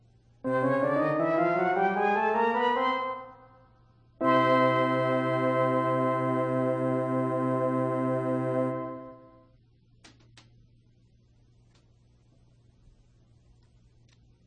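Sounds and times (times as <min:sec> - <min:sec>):
C scale: 0:00.4 - 0:03.6, 0:04.2 - 0:09.4.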